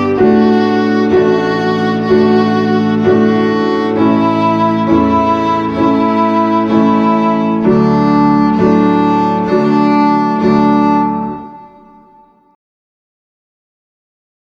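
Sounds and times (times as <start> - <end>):
violin finger exercise on the D string in quarter notes: 0.0 - 12.5.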